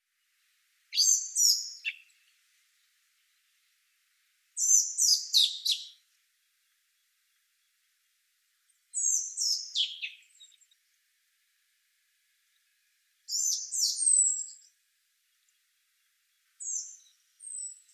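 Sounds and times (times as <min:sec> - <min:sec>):
common blackbird calls: 0:00.9 - 0:02.3, 0:04.6 - 0:06.0, 0:09.0 - 0:10.7, 0:13.3 - 0:14.7.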